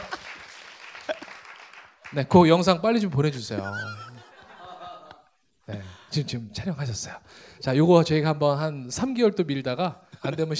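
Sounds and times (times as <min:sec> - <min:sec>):
laughter: 0:00.0 - 0:00.4, 0:03.3 - 0:06.3
crowd applause: 0:00.0 - 0:02.3
speech: 0:02.1 - 0:04.1, 0:05.7 - 0:10.5.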